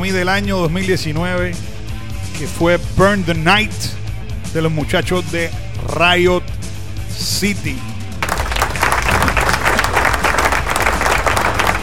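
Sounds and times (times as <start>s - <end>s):
speech: 0.1s - 1.7s, 2.4s - 6.6s, 7.2s - 7.9s
applause: 8.2s - 11.8s.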